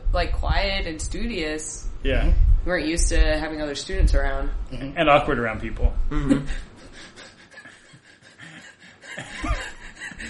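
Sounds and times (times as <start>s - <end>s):
speech: 0.2s - 7.2s
person's wheezing breathy laughter: 6.2s - 10.2s.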